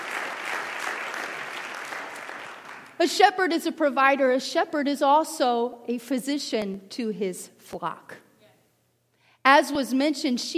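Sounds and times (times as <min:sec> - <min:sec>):
audience clapping: 0:00.0 - 0:03.0
speech: 0:03.0 - 0:08.2, 0:09.5 - 0:10.5.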